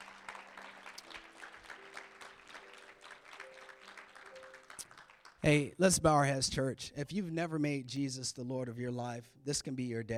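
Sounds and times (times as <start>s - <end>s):
audience clapping: 0.0s - 5.8s
speech: 5.4s - 10.1s.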